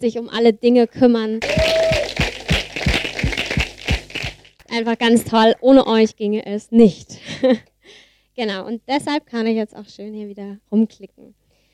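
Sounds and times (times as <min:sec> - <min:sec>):
speech: 0:00.0 - 0:01.8, 0:04.8 - 0:11.4
church congregation clapping at a Sunday service: 0:01.4 - 0:04.6.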